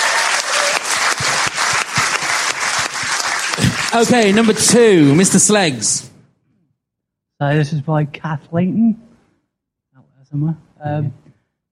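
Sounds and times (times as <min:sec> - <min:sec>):
round of applause: 0:00.0 - 0:05.9
speech: 0:03.9 - 0:06.1, 0:07.4 - 0:09.1, 0:10.3 - 0:11.2.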